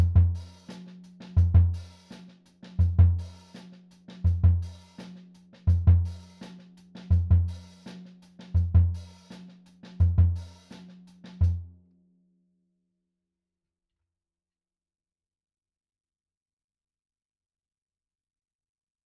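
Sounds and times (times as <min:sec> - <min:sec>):
jungle kick drum for film: 0:00.0 - 0:00.4, 0:01.4 - 0:01.8, 0:02.8 - 0:03.2, 0:04.3 - 0:04.6, 0:05.7 - 0:06.1, 0:07.1 - 0:07.5, 0:08.6 - 0:09.0, 0:10.0 - 0:10.4.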